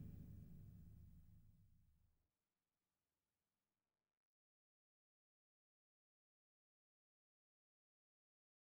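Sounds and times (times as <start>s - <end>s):
drums: 0.0s - 1.2s.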